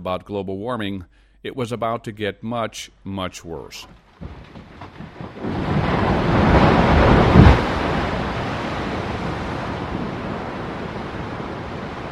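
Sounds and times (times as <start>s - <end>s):
speech: 0.0s - 4.5s
glacier ice calving: 4.1s - 12.1s.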